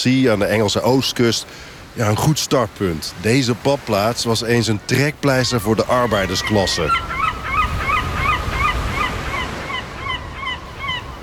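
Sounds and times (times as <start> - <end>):
speech: 0.0 - 7.2
rushing wash: 0.3 - 11.2
seagulls screeching over an empty seaside resort on England's east coast: 5.2 - 11.2.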